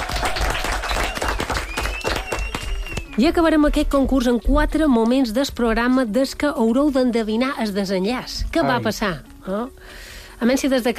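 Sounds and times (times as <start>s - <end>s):
audience applause: 0.0s - 3.2s
speech: 3.2s - 10.9s.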